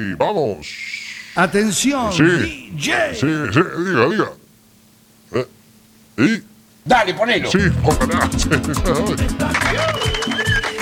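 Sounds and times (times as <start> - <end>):
speech: 0.0 - 4.4, 5.3 - 5.5, 6.2 - 10.5
laughter: 7.4 - 10.8
applause: 9.2 - 10.8.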